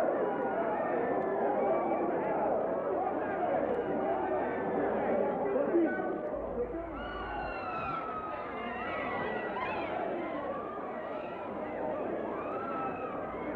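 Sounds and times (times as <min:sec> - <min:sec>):
panicking crowd in a big city: 0:00.0 - 0:13.5.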